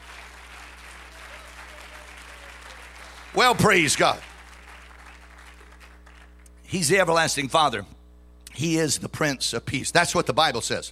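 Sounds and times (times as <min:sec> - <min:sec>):
audience clapping hands: 0:00.0 - 0:06.5
speech: 0:03.4 - 0:04.3, 0:06.7 - 0:08.0, 0:08.6 - 0:10.8.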